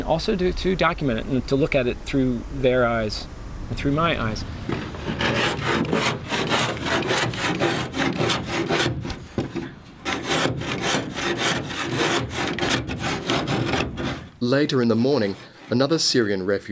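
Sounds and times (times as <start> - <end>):
speech: 0.1 - 4.8, 14.5 - 16.7
wood plane shaping a boat hull: 4.7 - 9.3, 10.0 - 14.3.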